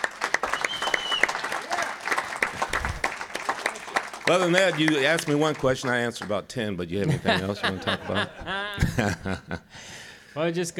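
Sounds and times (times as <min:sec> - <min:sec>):
audience applause: 0:00.0 - 0:06.4
speech: 0:04.3 - 0:10.7
laughter: 0:07.0 - 0:09.7.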